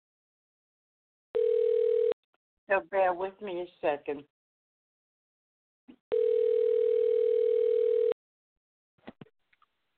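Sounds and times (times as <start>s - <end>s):
telephone beep while placing a call: 1.4s - 2.2s, 6.1s - 8.2s
speech: 2.7s - 4.3s.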